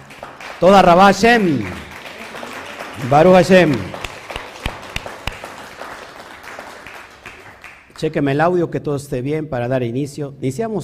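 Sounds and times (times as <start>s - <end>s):
audience applause: 0.0s - 7.9s
speech: 0.2s - 1.8s, 3.0s - 3.9s, 8.0s - 10.8s.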